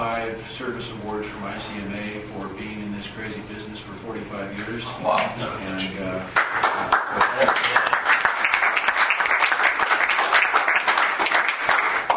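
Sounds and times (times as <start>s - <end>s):
speech: 0.4s - 7.9s
audience applause: 6.4s - 12.1s.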